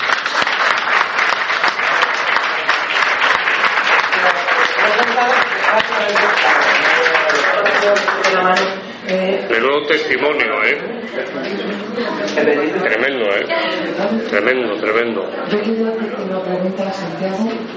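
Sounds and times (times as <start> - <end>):
audience applause: 0.0 - 9.1
speech: 9.6 - 17.7.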